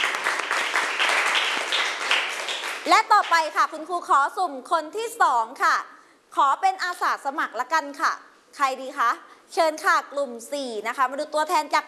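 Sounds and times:
classroom children clapping for a classmate: 0.0s - 3.4s
speech: 2.9s - 11.8s.

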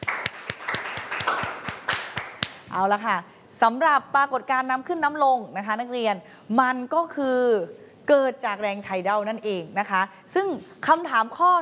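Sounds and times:
students clapping: 0.0s - 2.7s
speech: 2.8s - 11.5s.

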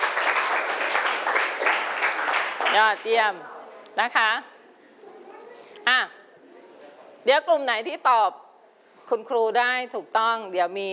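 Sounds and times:
students in a classroom applauding: 0.0s - 3.0s
speech: 2.8s - 4.5s, 5.9s - 6.2s, 7.2s - 8.4s, 9.1s - 10.9s.

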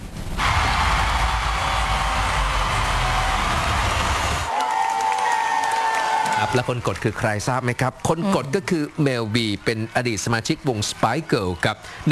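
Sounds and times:
thunderous crowd applause filling a big hall: 0.4s - 12.1s
speech: 6.5s - 12.1s.

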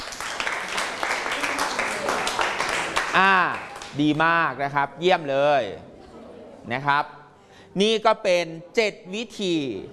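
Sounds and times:
audience clapping: 0.0s - 4.0s
speech: 3.1s - 5.9s, 6.6s - 9.9s.

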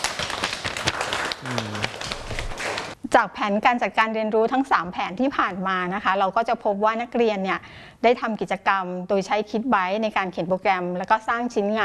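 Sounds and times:
students clapping: 0.0s - 3.0s
speech: 1.4s - 1.8s, 3.2s - 11.8s.

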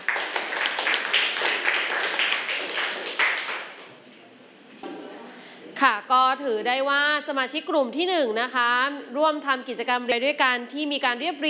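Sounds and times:
classroom group applauding: 0.0s - 4.0s
speech: 5.8s - 11.4s.

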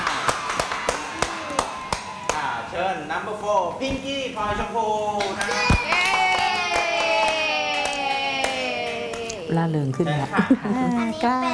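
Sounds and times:
audience in Thailand clapping for a young contestant at a stage event: 0.0s - 2.5s, 5.2s - 9.4s
speech: 2.8s - 6.2s, 9.5s - 11.5s.

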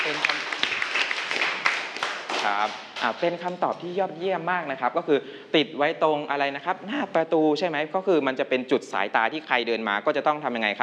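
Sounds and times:
classroom applause for a student: 0.0s - 3.2s
speech: 2.4s - 10.8s.

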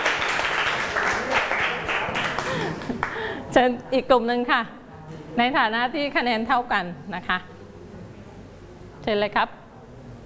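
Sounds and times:
classroom applause: 0.0s - 3.3s
speech: 3.6s - 7.5s, 9.0s - 9.6s.

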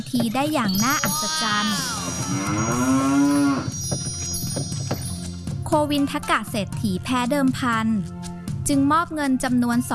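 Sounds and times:
speech: 0.0s - 3.4s, 5.7s - 9.9s
ox lowing as it pulls a hundred carts: 1.1s - 4.4s.

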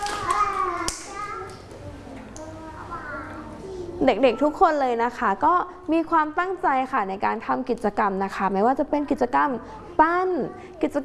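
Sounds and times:
children clapping hands: 0.0s - 1.7s
speech: 4.0s - 11.0s.

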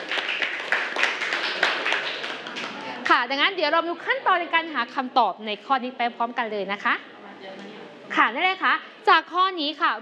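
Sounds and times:
group clapping: 0.0s - 3.2s
speech: 3.2s - 7.1s, 8.1s - 10.0s.

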